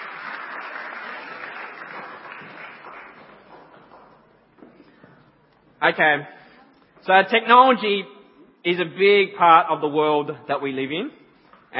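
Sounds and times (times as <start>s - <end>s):
audience clapping: 0.0s - 4.6s
speech: 5.8s - 6.4s, 7.0s - 11.7s.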